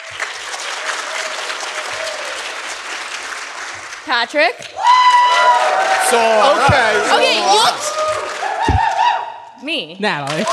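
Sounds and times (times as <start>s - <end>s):
small group clapping in approval: 0.0s - 9.5s, 10.1s - 10.5s
speech: 4.1s - 8.4s, 9.6s - 10.5s
murmur of voices: 6.0s - 8.1s.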